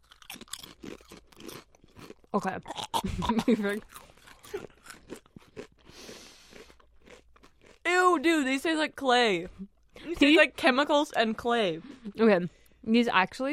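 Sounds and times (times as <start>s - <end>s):
crunching potato chips: 0.0s - 3.0s, 3.7s - 7.9s
speech: 2.3s - 4.7s, 8.2s - 13.5s.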